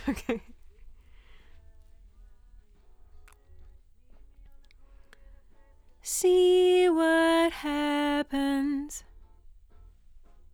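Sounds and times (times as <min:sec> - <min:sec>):
doubled lead vocal: 0:06.0 - 0:09.0.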